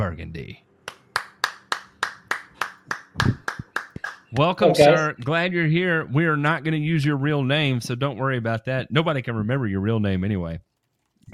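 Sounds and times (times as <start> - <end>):
speech: 0.0 - 0.7, 4.3 - 10.7
steady rhythmic clapping: 0.9 - 5.3.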